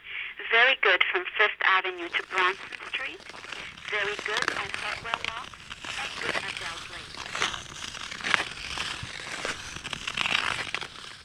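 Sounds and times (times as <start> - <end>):
speech: 0.6 - 7.4
ice skates on frozen canal: 2.1 - 11.2.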